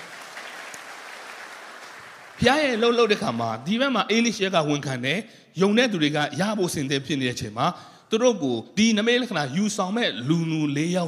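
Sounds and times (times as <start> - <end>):
church congregation clapping during a worship service: 0.0 - 3.4
speech: 2.4 - 11.0.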